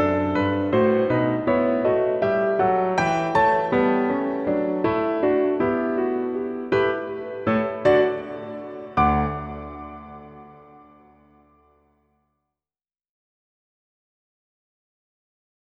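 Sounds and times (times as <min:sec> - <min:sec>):
piano piece: 0:00.0 - 0:11.8.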